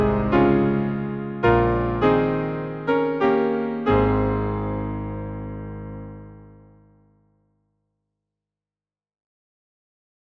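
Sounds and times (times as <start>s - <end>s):
piano: 0.0s - 7.6s.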